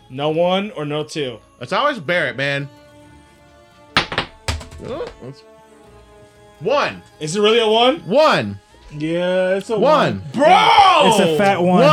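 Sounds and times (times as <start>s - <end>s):
speech: 0.1s - 2.8s, 4.8s - 5.5s, 6.6s - 11.9s
dice rolled onto a hard surface: 4.0s - 5.2s.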